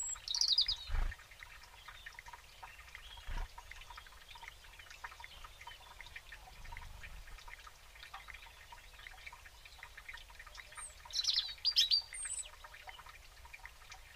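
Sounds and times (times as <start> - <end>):
European robin twittering: 0.0 - 1.0, 10.6 - 12.6
background chorus of other birds: 0.0 - 13.2.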